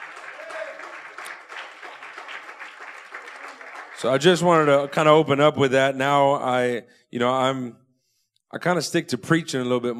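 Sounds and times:
audience applause: 0.0s - 5.3s
speech: 4.0s - 7.8s, 8.5s - 9.9s.

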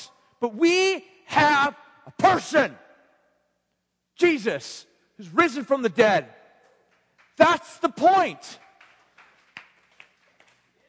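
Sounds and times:
speech: 0.4s - 2.8s, 4.2s - 6.4s, 7.4s - 8.6s
scattered hesitant audience claps: 6.8s - 10.8s.

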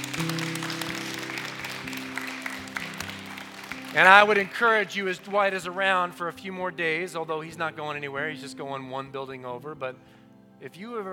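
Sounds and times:
crowd applauding: 0.0s - 5.7s
speech: 3.9s - 11.1s.

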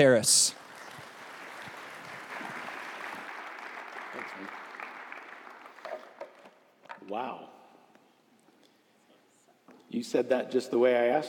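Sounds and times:
speech: 0.0s - 0.6s, 9.9s - 11.2s
church audience applause welcoming a pastor: 0.5s - 6.5s.

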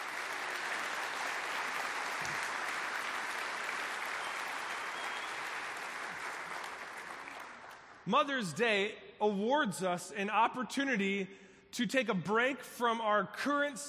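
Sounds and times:
audience applause: 0.0s - 8.0s
speech: 8.1s - 13.8s.

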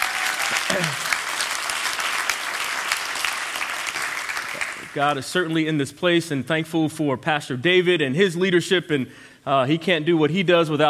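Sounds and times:
church congregation applause during a service: 0.0s - 5.2s
speech: 0.5s - 1.1s, 5.0s - 10.8s.

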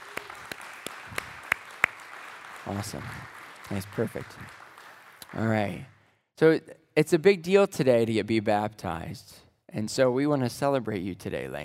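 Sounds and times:
round of applause: 0.0s - 5.9s
speech: 2.7s - 4.6s, 5.3s - 11.6s.

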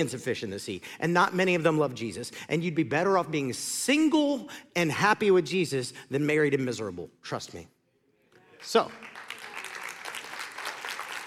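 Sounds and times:
speech: 0.0s - 7.8s, 8.6s - 9.1s
audience clapping: 8.6s - 11.2s.

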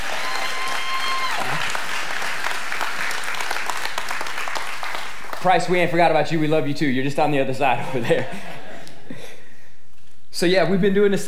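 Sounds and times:
crowd applause: 0.0s - 5.7s
speech: 5.4s - 8.6s, 10.4s - 11.2s.

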